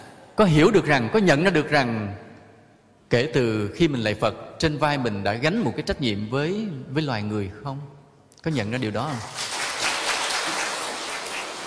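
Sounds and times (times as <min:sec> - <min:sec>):
speech: 0:00.4 - 0:02.2, 0:03.1 - 0:09.5
audience applause at a Buddhist dharma talk: 0:09.1 - 0:11.6.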